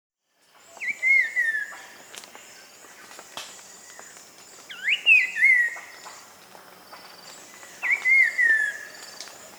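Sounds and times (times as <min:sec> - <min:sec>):
slate-colored grosbeak singing whistled phrases in South America: 0:00.8 - 0:01.8, 0:04.7 - 0:05.8, 0:07.8 - 0:09.0.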